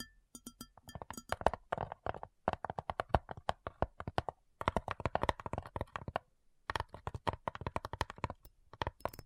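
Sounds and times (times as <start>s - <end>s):
crisp tapping: 0.9s - 9.1s.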